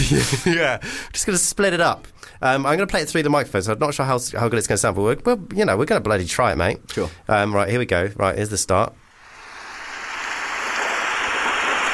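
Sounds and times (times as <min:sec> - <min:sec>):
speech: 0:00.1 - 0:09.0
rain sound effect: 0:09.2 - 0:11.9.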